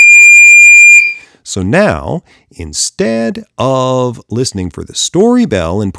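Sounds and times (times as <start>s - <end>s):
short electronic story beep: 0.0s - 1.2s
speech: 1.5s - 5.9s.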